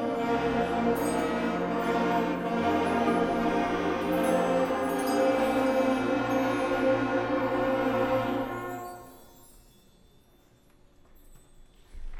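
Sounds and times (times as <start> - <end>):
elementary school band playing: 0.0 - 9.3.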